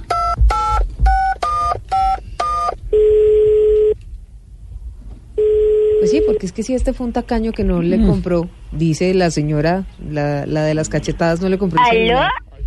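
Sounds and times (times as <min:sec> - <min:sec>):
telephone ringing tone: 0:00.0 - 0:04.0, 0:05.4 - 0:06.4
speech: 0:06.4 - 0:12.4.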